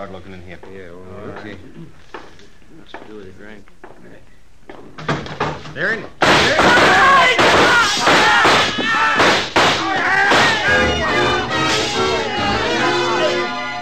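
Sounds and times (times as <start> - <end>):
speech: 0.0 - 9.5
gunshots in a saloon: 6.2 - 10.9
raised voices: 6.4 - 13.8.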